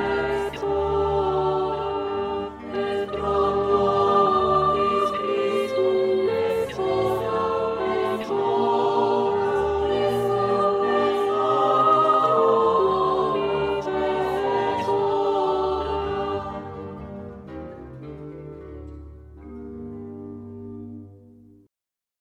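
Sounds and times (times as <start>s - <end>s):
alto voice singing: 0.0s - 16.9s.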